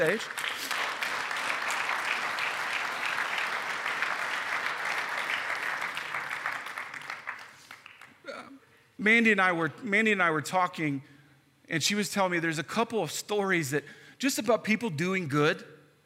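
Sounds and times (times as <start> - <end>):
speech: 0.0 - 0.5, 9.0 - 11.1, 11.7 - 15.7
audience applause: 0.0 - 8.2.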